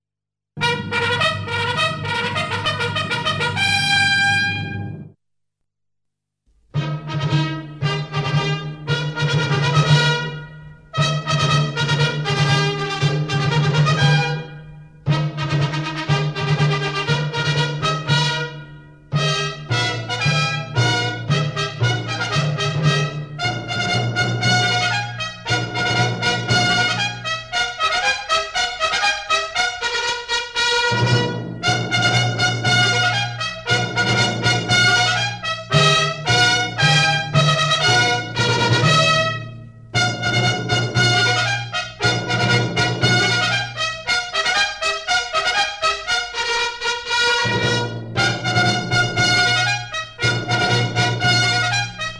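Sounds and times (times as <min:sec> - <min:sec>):
cuirassiers' military march: 0:00.6 - 0:05.1, 0:06.8 - 0:14.5, 0:15.1 - 0:52.1.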